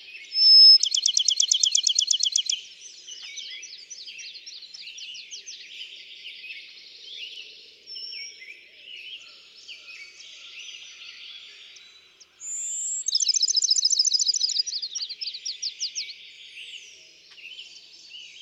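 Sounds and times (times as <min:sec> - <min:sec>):
Bachman's sparrow whistle and trill: 0:00.3 - 0:02.6, 0:12.5 - 0:15.8
birds twittering: 0:00.4 - 0:02.6, 0:11.7 - 0:15.7.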